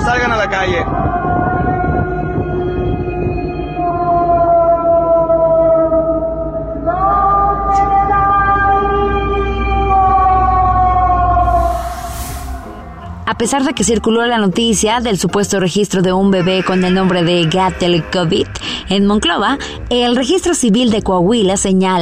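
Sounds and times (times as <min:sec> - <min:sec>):
spooky ghostly wailing drone: 0:00.0 - 0:20.8
speech: 0:00.4 - 0:01.6, 0:13.4 - 0:22.0.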